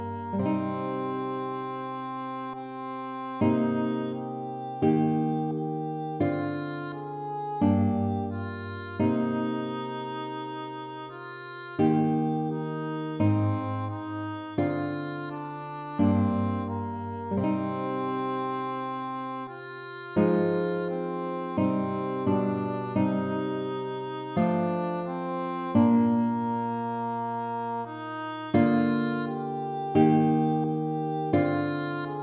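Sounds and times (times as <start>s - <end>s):
English horn playing a hymn: 0.0s - 32.2s
guitar playing a hymn: 0.0s - 32.2s.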